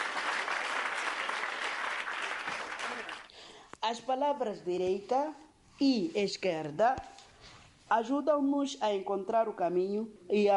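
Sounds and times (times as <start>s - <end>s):
clapping hands: 0.0s - 3.3s
speech: 3.9s - 7.1s, 7.9s - 10.5s.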